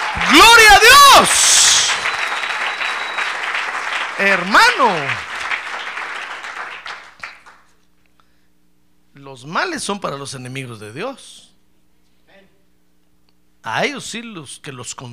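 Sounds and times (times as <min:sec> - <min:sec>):
audience applause: 0:00.0 - 0:07.7
speech: 0:04.2 - 0:05.3, 0:09.3 - 0:11.5, 0:13.6 - 0:15.1.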